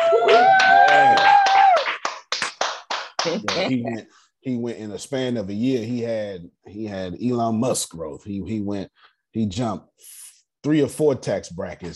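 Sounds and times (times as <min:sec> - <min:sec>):
audience clapping: 0:00.0 - 0:03.8
speech: 0:03.4 - 0:11.9.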